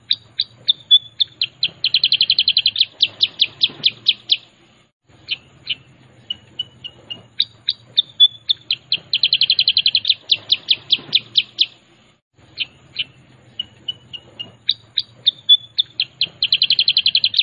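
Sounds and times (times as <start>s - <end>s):
sooty-headed bulbul song: 0.0s - 17.4s.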